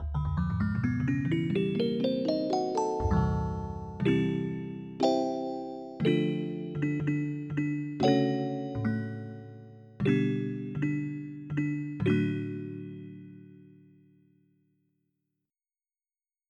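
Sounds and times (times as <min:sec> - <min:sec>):
music box: 0:01.0 - 0:13.1.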